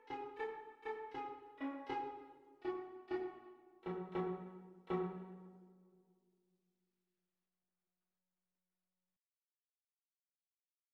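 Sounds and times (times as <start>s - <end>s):
viola duet at practice speed: 0.0s - 5.8s.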